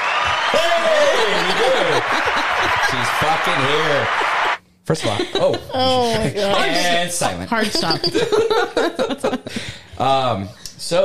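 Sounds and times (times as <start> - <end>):
applause button sound effect: 0.0 - 4.6
laughter: 0.4 - 7.0, 7.6 - 10.1
speech: 1.2 - 11.0.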